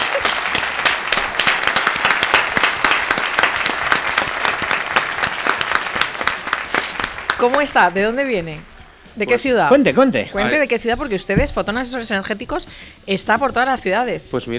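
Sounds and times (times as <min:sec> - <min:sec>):
audience applause: 0:00.0 - 0:08.3
speech: 0:07.4 - 0:14.5.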